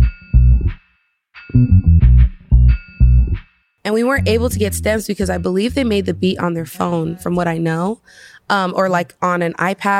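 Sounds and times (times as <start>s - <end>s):
heavy pulsing synth bass line: 0.0s - 0.7s, 1.5s - 3.4s, 4.2s - 7.4s
loud electronic beat: 0.0s - 0.8s, 1.5s - 3.4s, 4.2s - 7.6s
speech: 3.9s - 9.9s
bright synthesizer tones: 4.0s - 7.6s.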